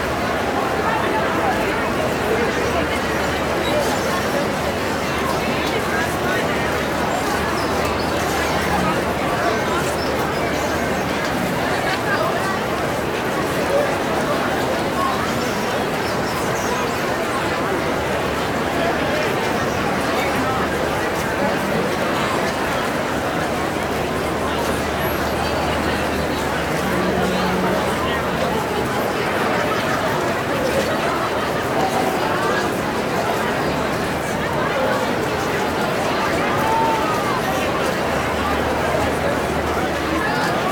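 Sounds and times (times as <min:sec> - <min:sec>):
busy outdoor crowd walla in an open plaza: 0:00.0 - 0:40.7.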